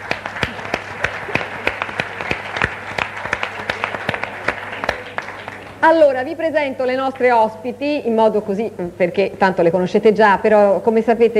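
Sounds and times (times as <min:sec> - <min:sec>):
audience applause: 0:00.0 - 0:05.8
speech: 0:05.8 - 0:11.3.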